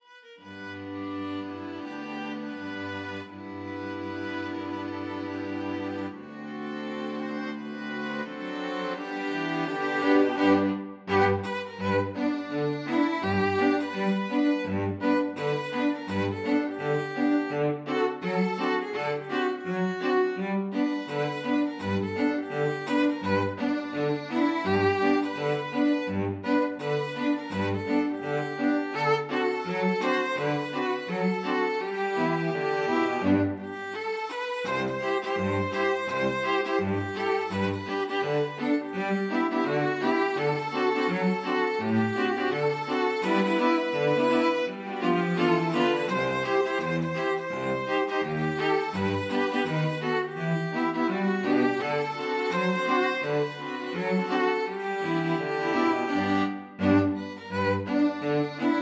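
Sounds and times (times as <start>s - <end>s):
string quartet playing: 0.0s - 58.8s.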